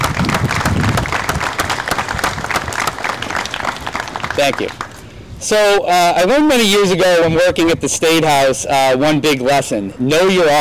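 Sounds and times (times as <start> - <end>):
round of applause: 0.0 - 5.0
speech: 4.4 - 10.5.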